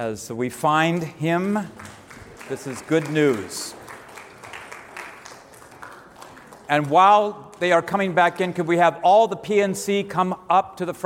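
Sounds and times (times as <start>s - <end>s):
speech: 0.0s - 3.8s, 6.7s - 11.0s
audience applause: 1.0s - 8.7s.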